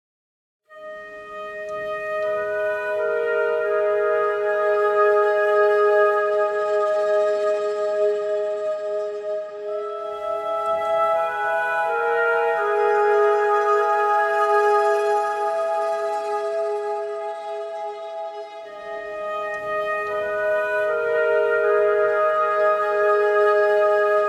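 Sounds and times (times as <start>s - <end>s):
warm flute: 0.7s - 24.2s.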